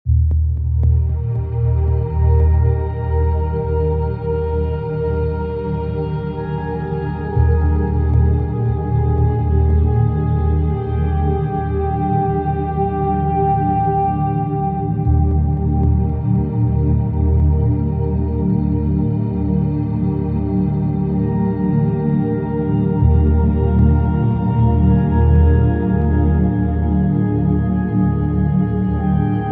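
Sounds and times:
soothing harmony: 0:01.1 - 0:29.4.

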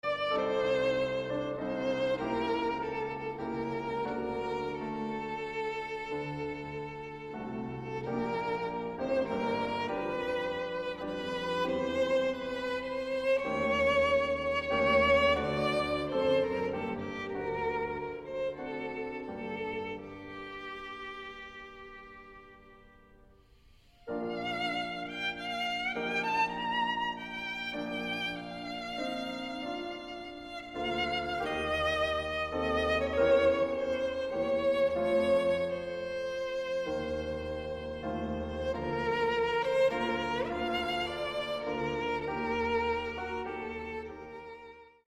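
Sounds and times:
violin sonata in G minor: 0:00.0 - 0:45.0.

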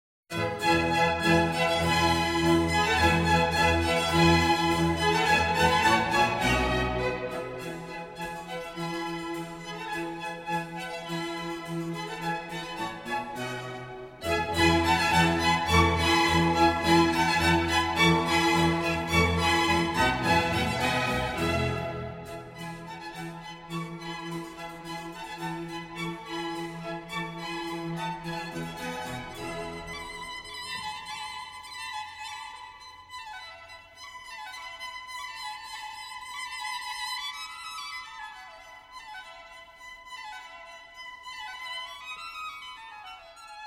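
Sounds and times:
violin concerto allegro movement in E major: 0:00.3 - 0:43.6.

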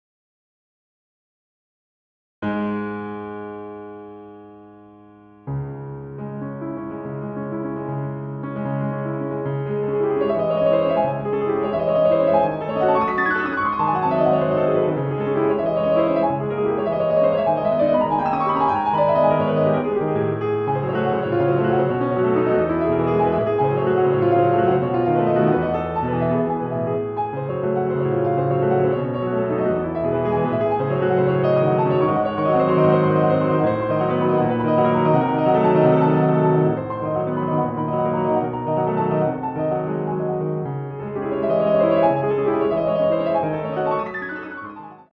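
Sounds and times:
piano impromptu in C-sharp minor: 0:02.4 - 0:45.1.

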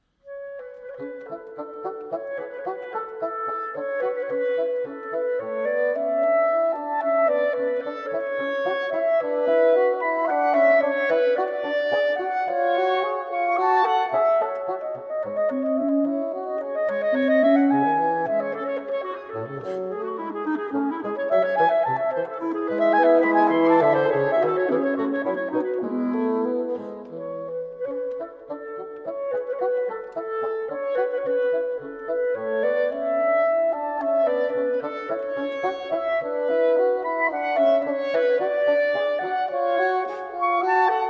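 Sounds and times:
wind quintet playing a minuet: 0:00.2 - 0:41.0.

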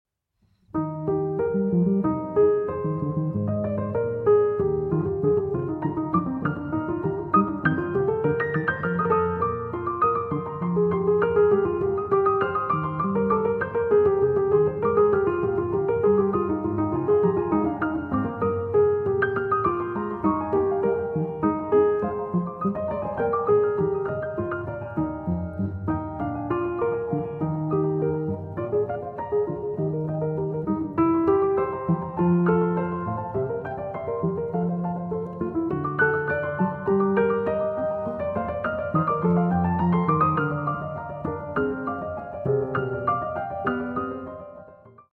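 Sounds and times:
trio sonata: 0:00.7 - 0:45.1.

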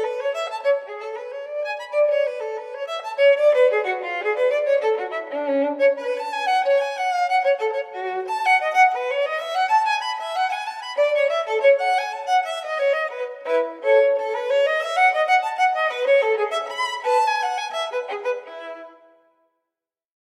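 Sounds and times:
solo violin bourree: 0:00.0 - 0:19.3.

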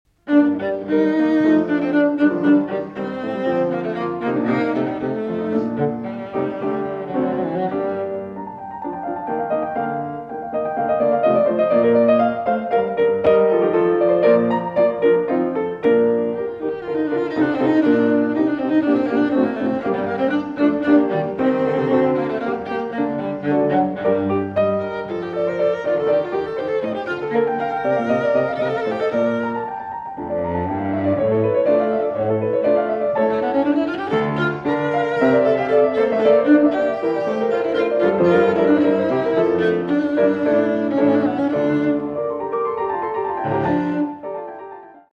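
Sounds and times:
cello sonata in G minor allegro: 0:00.1 - 0:45.1.

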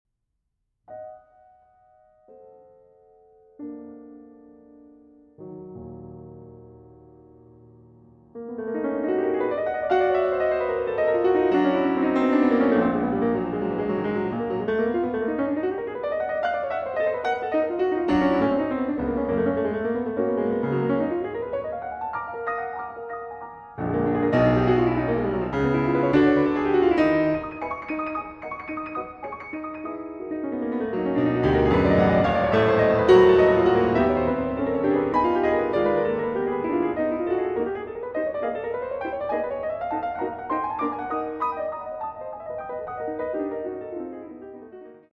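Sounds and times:
classical piece in E-flat minor: 0:00.9 - 0:45.1.

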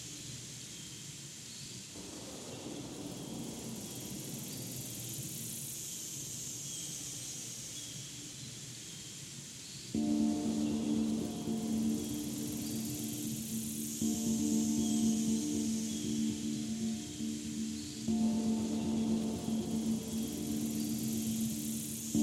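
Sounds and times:
orchestral music: 0:10.0 - 0:22.2.

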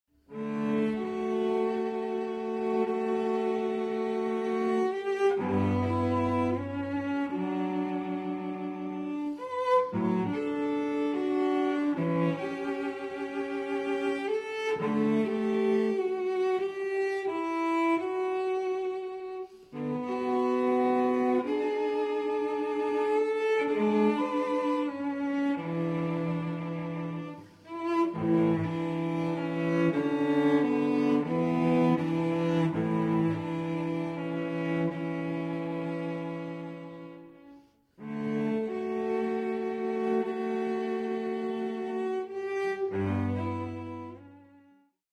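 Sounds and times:
cello sarabande: 0:00.2 - 0:45.0.

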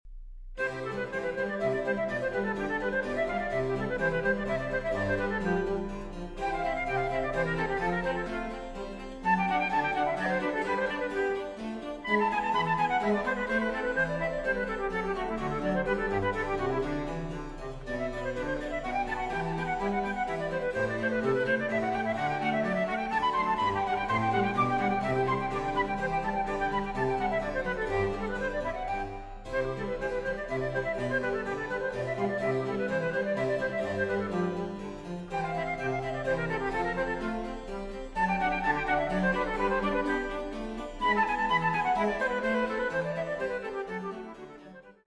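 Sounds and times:
flute sonata: 0:00.6 - 0:45.0.

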